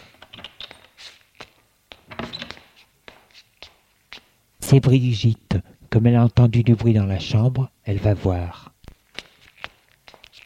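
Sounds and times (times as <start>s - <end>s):
front door opening: 2.1s - 2.6s
speech: 4.7s - 8.6s.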